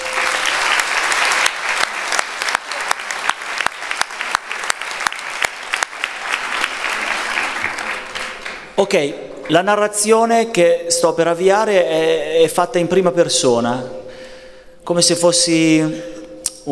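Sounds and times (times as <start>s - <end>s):
audience applause: 0.0s - 8.8s
speech: 8.8s - 14.0s, 14.9s - 16.6s.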